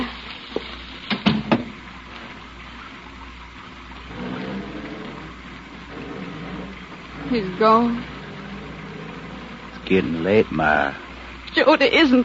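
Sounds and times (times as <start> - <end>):
rain: 0.0 - 12.2
knocks and thumps: 0.6 - 1.8
low rumble: 3.7 - 12.1
speech: 7.3 - 8.2, 9.9 - 11.0, 11.6 - 12.2.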